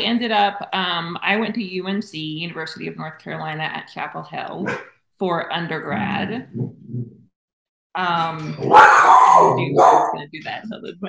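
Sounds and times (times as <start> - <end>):
speech: 0.0 - 6.6, 8.0 - 11.0
dog barking and growling: 4.6 - 4.8, 8.5 - 10.2.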